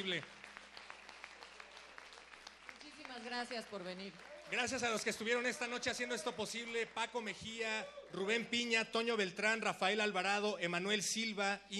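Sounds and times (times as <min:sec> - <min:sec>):
speech: 0:00.0 - 0:00.4, 0:03.1 - 0:11.7
audience applause: 0:00.0 - 0:08.6.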